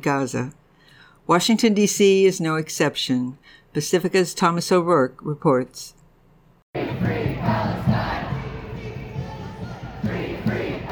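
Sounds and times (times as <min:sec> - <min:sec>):
speech: 0:00.0 - 0:00.6, 0:01.3 - 0:06.0
protest crowd chanting at a rally: 0:06.8 - 0:10.9.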